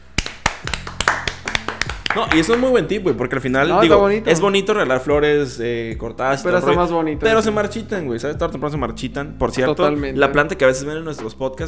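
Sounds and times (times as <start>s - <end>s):
hands clapping: 0.0s - 3.2s
speech: 2.1s - 11.6s.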